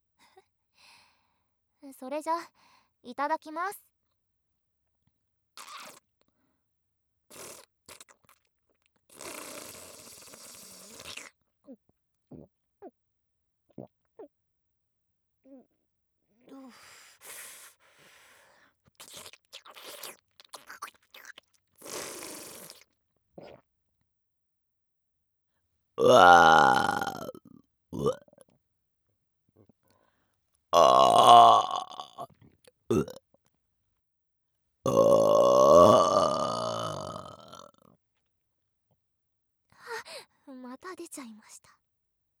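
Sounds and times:
person burping: 26.0 - 27.4, 28.0 - 28.2, 30.8 - 32.2, 32.9 - 33.2, 34.9 - 37.7.

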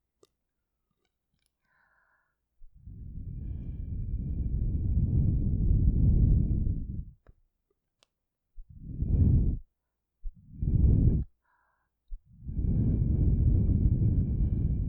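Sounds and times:
blowing through a straw into ears: 2.9 - 7.2, 8.8 - 9.6, 10.5 - 11.3, 12.4 - 14.8.

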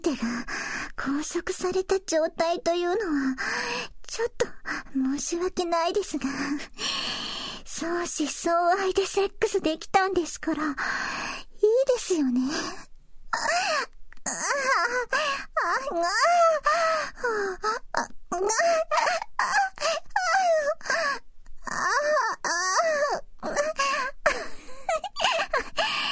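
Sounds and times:
speech: 0.0 - 7.0, 7.8 - 22.2
person crying: 13.3 - 21.2, 21.8 - 26.1.

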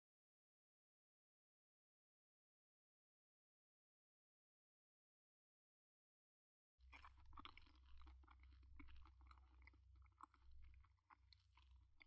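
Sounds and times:
eating dango dumplings: 6.9 - 12.0.

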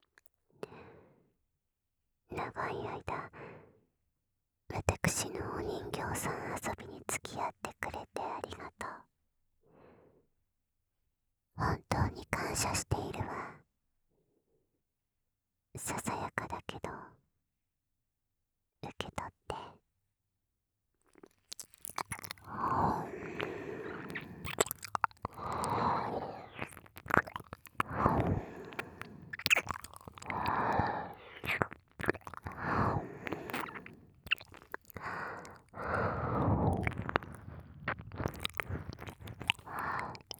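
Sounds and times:
ASMR whispering: 2.3 - 3.4, 4.7 - 9.1, 11.6 - 13.6, 15.8 - 17.1, 18.8 - 19.8, 22.4 - 40.3
ASMR ear licking: 21.2 - 40.3.

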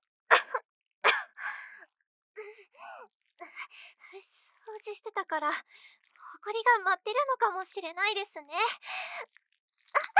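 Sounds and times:
person coughing: 0.3 - 1.4
speech: 4.8 - 9.3.

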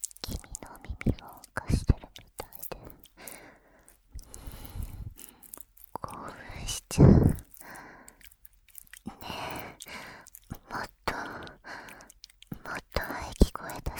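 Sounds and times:
ear licking in the left ear: 0.0 - 13.9
binaural person whispering: 0.2 - 3.4, 4.2 - 5.2, 5.9 - 7.8, 9.0 - 13.9
person breathing heavily: 3.0 - 5.6, 7.0 - 8.4, 9.1 - 12.2.

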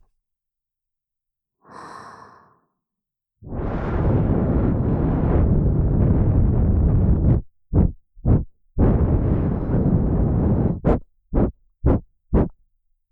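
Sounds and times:
blowing into the right ear: 3.5 - 12.5.

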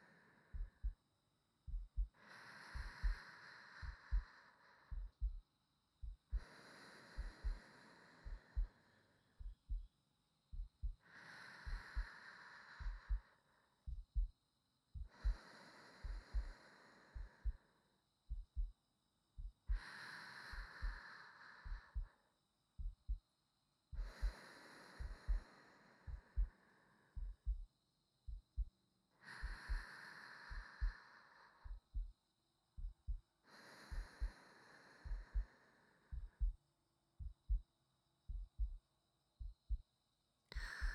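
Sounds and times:
new wife's heartbeat: 0.0 - 1.0, 1.7 - 3.2, 3.8 - 5.4, 6.0 - 6.5, 7.2 - 7.6, 8.2 - 8.7, 9.4 - 9.9, 10.5 - 11.0, 11.6 - 12.1, 12.8 - 13.2, 13.8 - 15.4, 16.0 - 16.5, 17.1 - 17.6, 18.2 - 18.8, 19.4 - 19.9, 20.5 - 21.0, 21.6 - 22.2, 22.8 - 23.2, 23.9 - 24.4, 25.0 - 25.4, 26.0 - 26.6, 27.2 - 27.7, 28.3 - 28.8, 29.4 - 29.9, 30.5 - 31.0, 31.6 - 32.2, 32.8 - 34.4, 35.0 - 35.5, 36.1 - 36.6, 37.2 - 37.7, 38.3 - 38.8, 39.4 - 39.9, 40.6 - 40.9
sleeping breathing: 0.0 - 1.0, 2.0 - 5.4, 6.3 - 9.6, 10.8 - 13.8, 15.0 - 17.9, 19.6 - 22.3, 23.9 - 27.6, 29.2 - 32.1, 33.4 - 36.6, 40.5 - 40.9.

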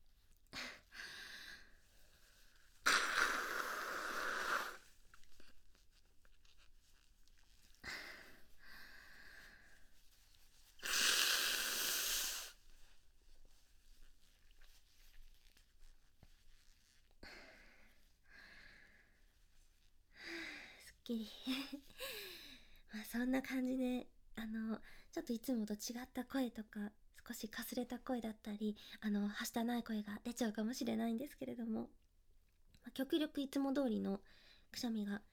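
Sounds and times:
person blowing nose: 2.8 - 5.3, 10.7 - 12.6
speech: 21.1 - 22.2, 22.9 - 32.0, 32.8 - 35.3.

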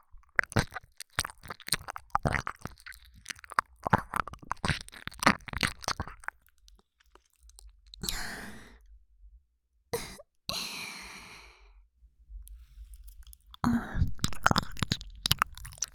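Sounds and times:
ear licking recorded with binaural microphone: 0.2 - 7.7, 13.0 - 15.9.

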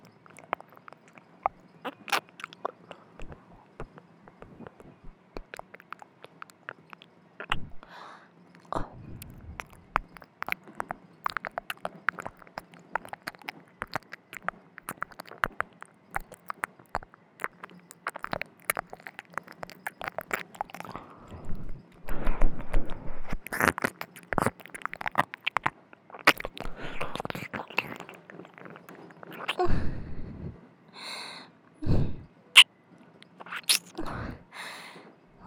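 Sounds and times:
ear licking: 0.0 - 30.4, 33.2 - 34.4
sensual breathy sighs: 7.6 - 9.7, 29.5 - 32.3, 34.0 - 35.1.

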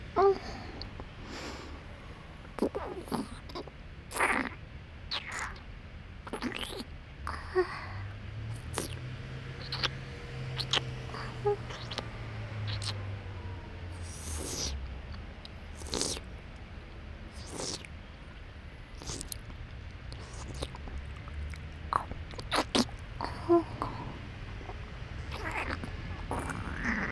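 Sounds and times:
national highway traffic: 0.0 - 27.1
wet mouth sounds in right ear: 2.6 - 7.7, 8.5 - 9.0, 9.6 - 13.0, 13.9 - 16.3, 17.3 - 27.1.

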